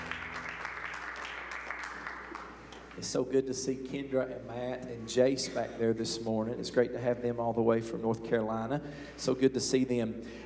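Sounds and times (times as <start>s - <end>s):
audience hand clapping: 0.0s - 3.1s
speech: 3.0s - 10.4s.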